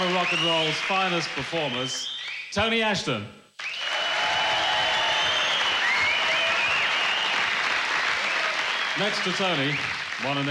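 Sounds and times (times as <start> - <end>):
whistles: 0.0 - 0.8, 1.6 - 2.6, 3.6 - 7.6, 8.2 - 10.1
large concert audience applause: 0.0 - 2.0, 3.6 - 10.4
cheers: 0.0 - 2.4, 3.6 - 10.4
speech: 0.0 - 3.4, 9.0 - 10.4.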